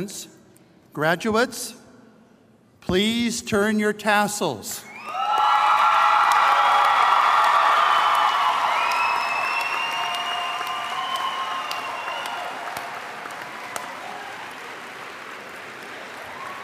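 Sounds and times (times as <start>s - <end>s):
speech: 0.0s - 0.4s, 1.0s - 1.8s, 2.8s - 5.2s
crowd applauding: 5.0s - 16.6s.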